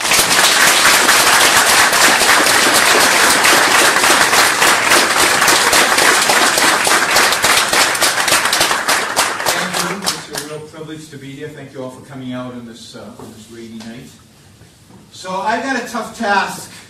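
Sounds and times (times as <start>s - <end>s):
audience applause: 0.0s - 10.5s
speech: 11.7s - 14.2s, 14.9s - 16.6s.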